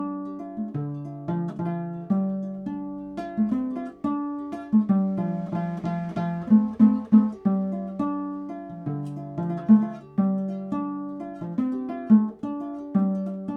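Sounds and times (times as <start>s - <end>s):
high-pitched eight-string ngoni: 0.0s - 13.5s.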